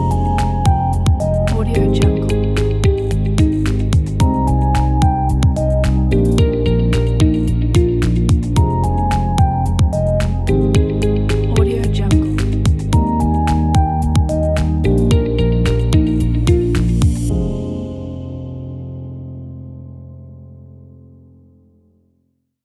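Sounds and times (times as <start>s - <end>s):
corporate ambient music: 0.0s - 20.0s.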